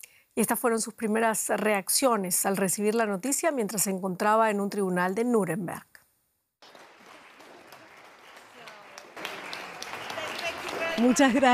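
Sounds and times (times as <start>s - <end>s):
speech: 0.4s - 5.9s, 11.0s - 11.5s
audience applause: 6.6s - 11.5s.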